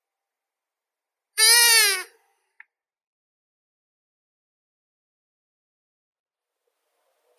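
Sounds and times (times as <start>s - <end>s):
long-eared owl Asio otus calling: 1.4s - 2.1s.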